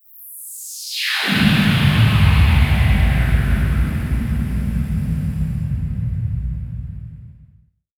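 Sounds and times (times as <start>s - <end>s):
downward sweep effect: 1.2s - 7.1s.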